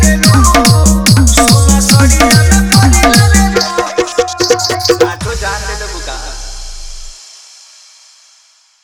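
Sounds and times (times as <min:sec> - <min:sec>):
Bhojpuri remix song: 0:00.0 - 0:06.5.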